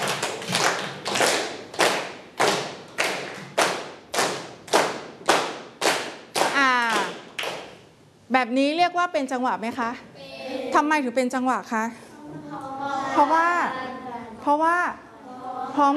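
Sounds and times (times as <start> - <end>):
children clapping hands: 0.0 - 7.8
speech: 8.4 - 10.1, 10.7 - 12.0, 13.2 - 13.8, 14.4 - 15.0, 15.8 - 15.9.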